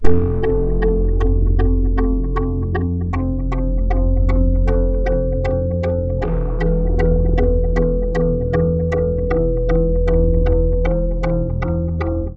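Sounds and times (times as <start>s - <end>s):
polyphonic synth: 0.0s - 12.3s.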